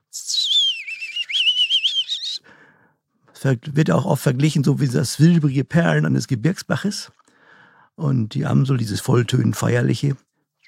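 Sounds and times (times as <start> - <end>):
person whistling an imitation of a European robin's song: 0.1 - 2.5
speech: 3.4 - 7.2, 8.0 - 10.3.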